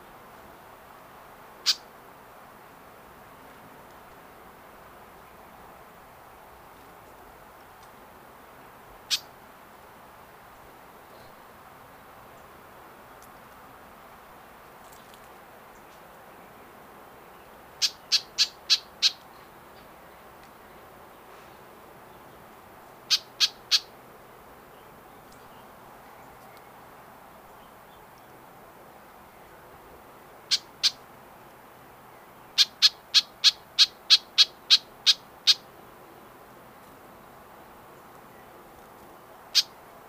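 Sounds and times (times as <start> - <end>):
White-eyed Vireo Vireo griseus singing: 1.6 - 1.9, 9.1 - 9.3, 17.3 - 20.0, 23.0 - 23.9, 30.5 - 31.0, 32.1 - 35.7, 39.2 - 39.8.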